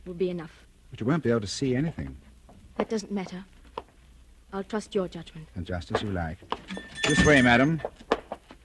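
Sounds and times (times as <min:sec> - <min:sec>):
speech: 0:00.0 - 0:03.6, 0:04.5 - 0:08.0
more than 100 clocks ticking in a room: 0:06.7 - 0:07.9.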